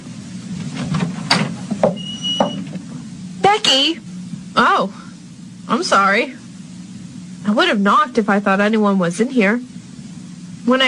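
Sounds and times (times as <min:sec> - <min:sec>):
low room rumble: 0:00.0 - 0:10.8
door creaking as it swings: 0:01.3 - 0:02.7
speech: 0:03.6 - 0:05.0, 0:05.7 - 0:06.4, 0:07.4 - 0:09.7, 0:10.6 - 0:10.8.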